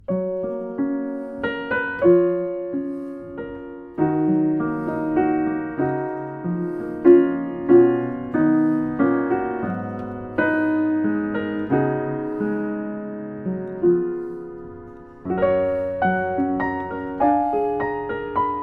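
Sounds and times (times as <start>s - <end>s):
Samick JS121 piano: 0.0s - 18.6s.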